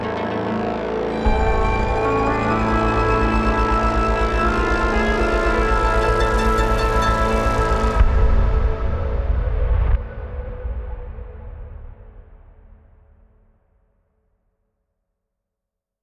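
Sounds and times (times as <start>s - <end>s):
cinematic Arabic dawn music: 0.0s - 11.3s.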